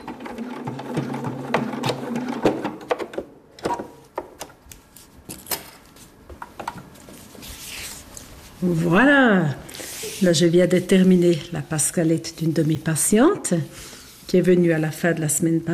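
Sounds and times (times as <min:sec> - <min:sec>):
sewing machine stitching a hair prosthesis in a hairdressing salon in Peseux: 0:00.0 - 0:02.8
speech: 0:08.6 - 0:09.6, 0:10.2 - 0:15.7.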